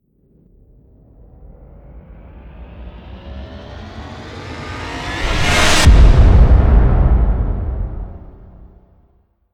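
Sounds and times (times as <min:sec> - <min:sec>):
alarming trailer impact: 0:04.7 - 0:08.9.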